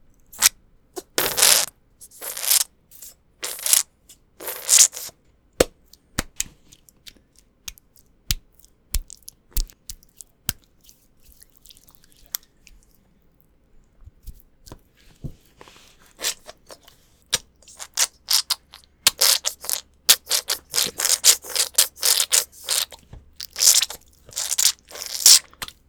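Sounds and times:
gel squishing between hands: 0.4s - 2.7s, 3.4s - 3.8s, 4.4s - 13.1s, 16.1s - 25.8s.

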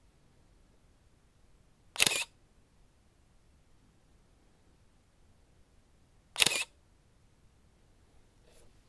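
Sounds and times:
camera shutter: 2.0s - 2.4s, 6.4s - 6.8s.

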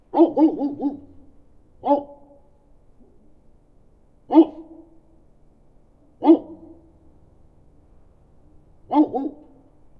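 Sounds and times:
big dog barking in an alley: 0.1s - 2.4s, 4.3s - 4.8s, 6.2s - 6.8s, 8.9s - 9.6s.

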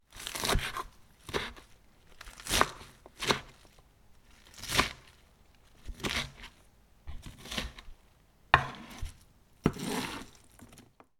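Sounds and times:
chopping lettuce on a cutting board: 0.1s - 3.7s, 4.5s - 5.1s, 5.8s - 7.8s, 8.6s - 10.4s.

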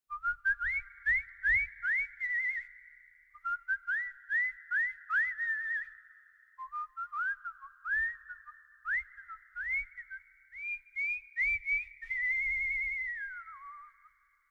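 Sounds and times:
person whistling: 0.1s - 14.4s.

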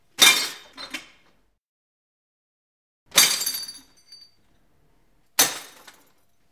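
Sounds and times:
small glass bottle crash: 3.1s - 4.3s, 5.4s - 6.2s.

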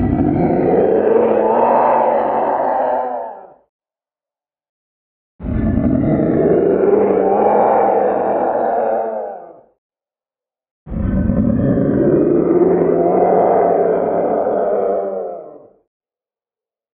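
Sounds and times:
raging madman zombie beast: 0.0s - 3.6s, 5.7s - 9.6s, 11.0s - 15.7s.

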